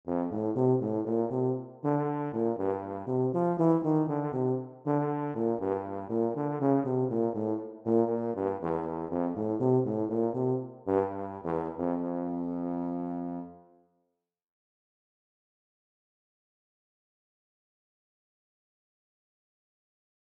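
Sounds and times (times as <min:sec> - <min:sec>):
tuba: 0:00.0 - 0:13.8.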